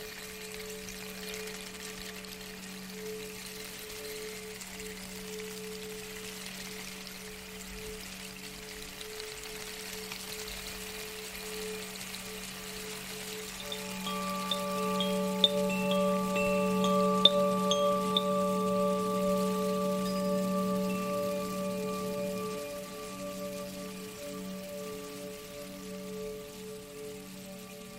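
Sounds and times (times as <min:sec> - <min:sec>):
handmade Zaphir wind chimes ringing: 0:13.4 - 0:27.9.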